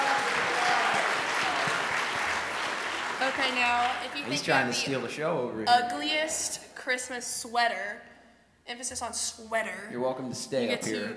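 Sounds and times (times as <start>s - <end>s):
crowd applauding ugly Christmas sweater contest contestants: 0.0s - 5.4s
speech: 3.4s - 8.1s, 8.7s - 11.1s.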